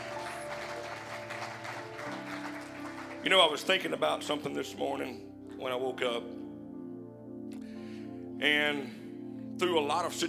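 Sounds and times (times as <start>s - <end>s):
audience clapping hands: 0.0s - 3.8s
speech: 3.2s - 6.4s, 8.4s - 9.0s, 9.6s - 10.2s.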